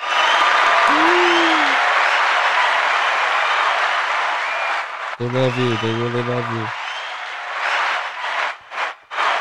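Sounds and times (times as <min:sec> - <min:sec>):
live audience applause: 0:00.0 - 0:09.3
low whoop: 0:00.8 - 0:01.9
speech: 0:05.2 - 0:06.8.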